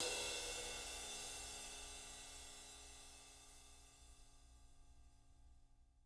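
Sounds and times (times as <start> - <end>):
ride cymbal: 0.0 - 4.0.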